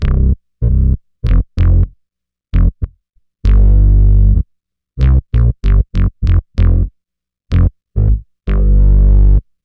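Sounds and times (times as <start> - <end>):
synth bass: 0.0 - 1.9, 2.6 - 4.4, 5.0 - 6.9, 7.5 - 9.4.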